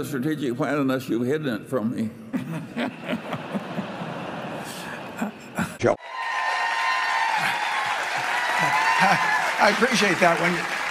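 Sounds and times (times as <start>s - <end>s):
speech: 0.0s - 3.2s, 9.0s - 10.8s
laughter: 2.3s - 5.9s, 7.3s - 10.8s
audience standing and applauding: 6.0s - 10.8s.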